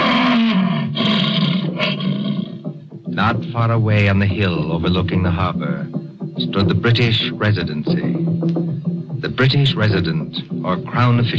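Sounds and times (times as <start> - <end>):
lion roaring: 0.0 - 2.8
speech: 3.2 - 8.6, 9.2 - 11.3.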